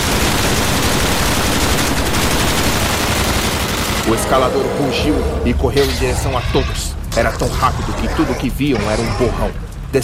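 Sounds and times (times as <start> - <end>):
sustained rapid gunfire: 0.0 - 4.1
speech: 4.1 - 10.0.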